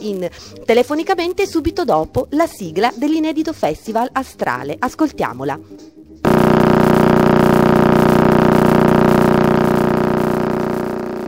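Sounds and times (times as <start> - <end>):
speech: 0.0 - 6.0
Crab Nebula pulsar radio signal: 6.3 - 11.2.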